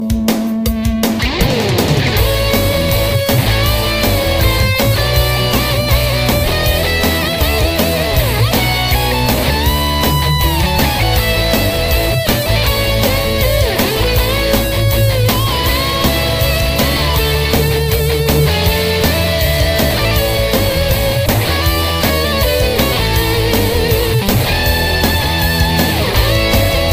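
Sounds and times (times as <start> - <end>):
rock Christmas ringtone: 0.0 - 26.9.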